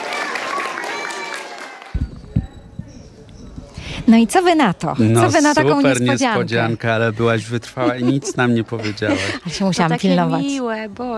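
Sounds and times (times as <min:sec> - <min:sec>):
audience applause: 0:00.0 - 0:04.1
laughter: 0:02.0 - 0:10.6
speech: 0:04.0 - 0:11.1.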